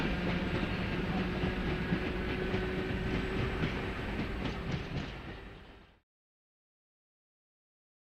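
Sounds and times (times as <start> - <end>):
electric train pulling into and out of station: 0.0 - 6.0.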